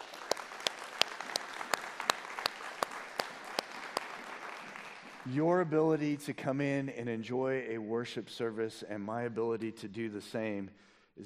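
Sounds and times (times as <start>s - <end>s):
audience applause: 0.0s - 5.6s
speech: 5.2s - 11.2s.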